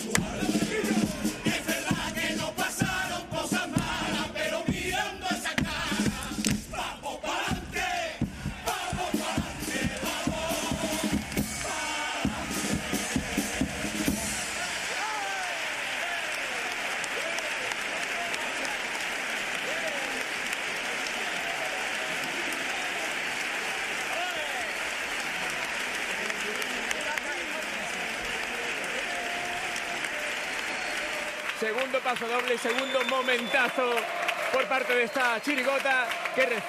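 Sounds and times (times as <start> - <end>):
crowd clapping: 0.1 - 8.1, 8.6 - 36.6
crowd cheering and shouting: 0.5 - 3.0, 6.1 - 36.6
speech: 32.5 - 36.6.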